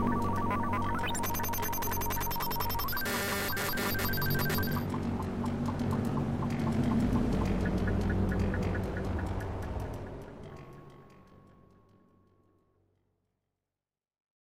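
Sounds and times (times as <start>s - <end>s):
noise: 0.0s - 10.4s.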